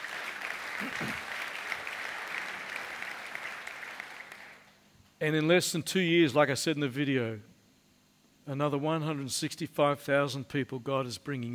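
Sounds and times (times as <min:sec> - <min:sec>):
audience applauding: 0:00.0 - 0:04.7
speech: 0:00.8 - 0:01.3, 0:05.2 - 0:07.5, 0:08.5 - 0:11.5.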